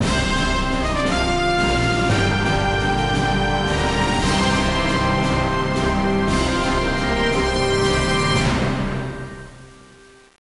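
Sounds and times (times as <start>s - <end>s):
intro music: 0.0s - 10.4s.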